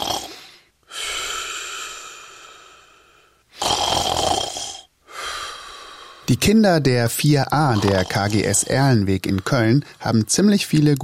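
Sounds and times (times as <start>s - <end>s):
person snoring asleep on the trip home: 0.0s - 6.3s, 7.6s - 9.7s
speech: 6.3s - 11.0s.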